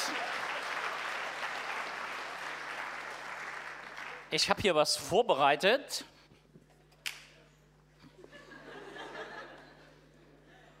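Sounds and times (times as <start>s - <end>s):
audience applause for a man introduced on stage: 0.0s - 4.3s
speech: 4.3s - 6.1s
laughter: 8.0s - 10.7s.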